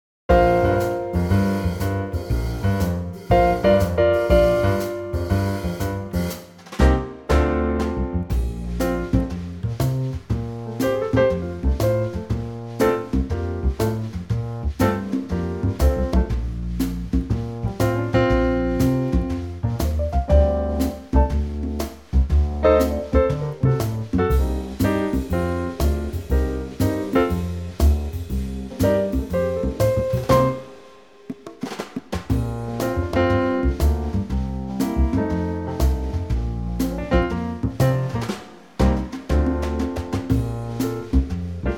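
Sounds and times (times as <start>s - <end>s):
trio of congas in B flat: 0.3s - 41.7s.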